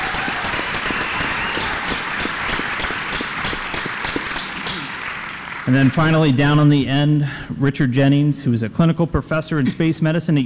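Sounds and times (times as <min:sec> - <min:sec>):
audience applause: 0:00.0 - 0:06.6
speech: 0:05.7 - 0:10.4.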